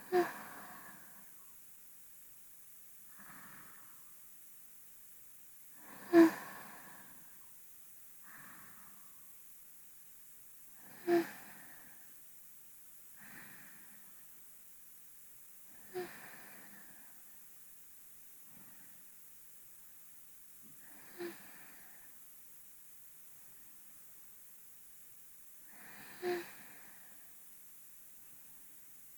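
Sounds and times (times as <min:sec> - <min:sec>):
person breathing in sleep, binaural: 0:00.0 - 0:01.4, 0:03.1 - 0:04.2, 0:05.7 - 0:07.4, 0:08.2 - 0:09.4, 0:10.8 - 0:12.2, 0:13.2 - 0:14.3, 0:15.7 - 0:17.4, 0:18.4 - 0:19.1, 0:20.7 - 0:22.2, 0:25.6 - 0:27.4.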